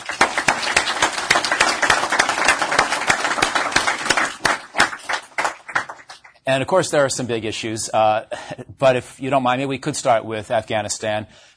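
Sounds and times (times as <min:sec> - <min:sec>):
audience applause: 0:00.0 - 0:06.3
speech: 0:06.4 - 0:11.5.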